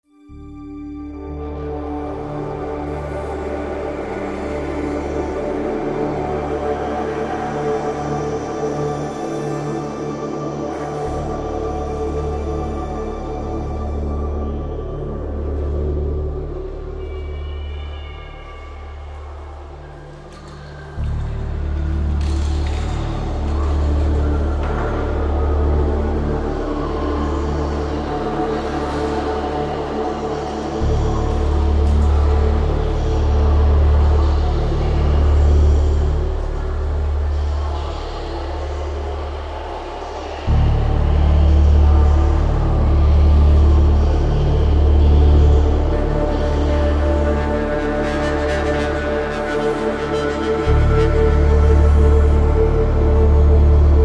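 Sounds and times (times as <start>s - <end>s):
city music: 0.0s - 54.0s.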